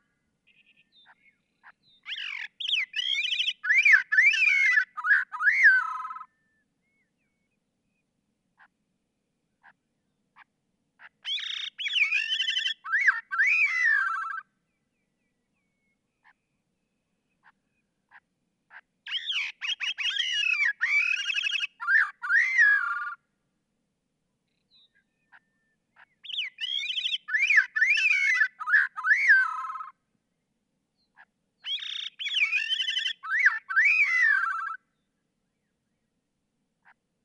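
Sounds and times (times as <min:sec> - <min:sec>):
Gray-cheeked Thrush calling: 0:02.1 - 0:06.3, 0:11.0 - 0:14.4, 0:18.1 - 0:23.2, 0:26.0 - 0:29.9, 0:31.7 - 0:34.8.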